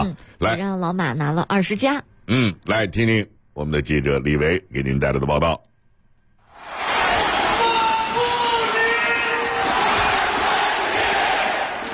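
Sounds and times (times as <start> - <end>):
speech: 0.0 - 5.7
basketball arena crowd chanting in support at a Beijing CBA home game: 6.5 - 11.9.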